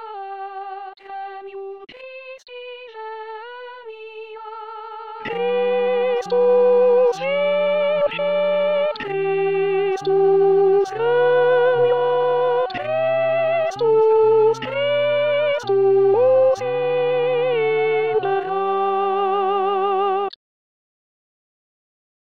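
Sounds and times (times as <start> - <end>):
tenors singing a chant: 4.0 - 20.1.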